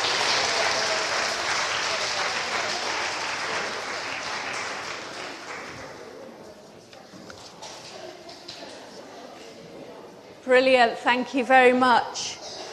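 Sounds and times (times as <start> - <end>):
crowd applause: 0.0 - 6.1
speech: 10.5 - 12.4.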